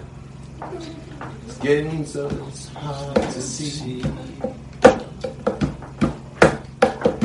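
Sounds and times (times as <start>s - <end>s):
speech: 1.6s - 4.6s
rhythmic knocking beat on a hard surface: 3.1s - 3.5s, 4.0s - 7.2s.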